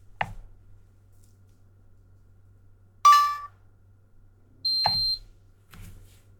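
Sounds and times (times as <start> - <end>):
cordless phone handset beeping for locating: 3.1 - 3.5, 4.7 - 5.2.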